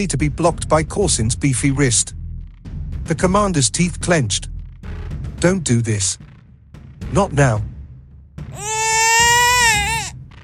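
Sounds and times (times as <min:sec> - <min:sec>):
speech: 0:00.0 - 0:02.2, 0:03.1 - 0:04.5, 0:05.4 - 0:06.3, 0:07.1 - 0:07.7
baby screaming and wailing: 0:08.6 - 0:10.2.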